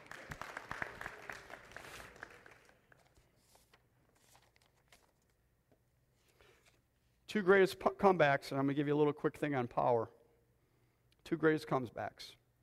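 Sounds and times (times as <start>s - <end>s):
audience applause: 0.0s - 2.8s
speech: 7.3s - 10.2s, 11.3s - 12.6s.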